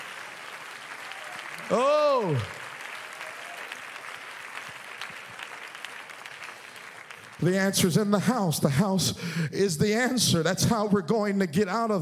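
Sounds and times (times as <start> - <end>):
audience clapping hands: 0.0 - 8.4
speech: 1.6 - 2.6, 7.4 - 12.0
person calling out: 1.7 - 2.5.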